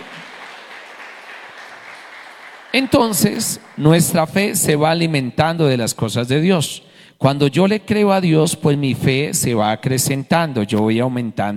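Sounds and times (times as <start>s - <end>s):
audience applause: 0.0s - 4.5s
speech: 2.8s - 11.5s.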